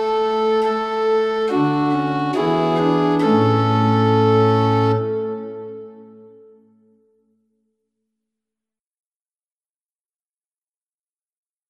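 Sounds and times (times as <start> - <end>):
instrumental music: 0.0 - 7.6.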